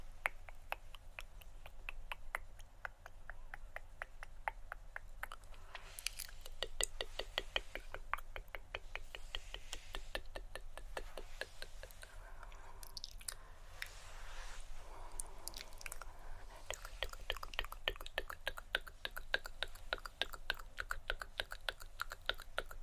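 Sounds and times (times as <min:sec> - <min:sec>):
rustling hand movements: 0:00.0 - 0:12.5, 0:13.3 - 0:20.5
mouth clicks and tongue taps: 0:00.0 - 0:14.0, 0:15.0 - 0:22.8.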